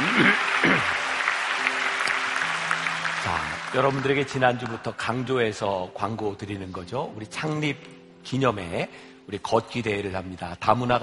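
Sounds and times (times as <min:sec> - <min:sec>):
audience applause: 0:00.0 - 0:05.3
speech: 0:03.8 - 0:11.0.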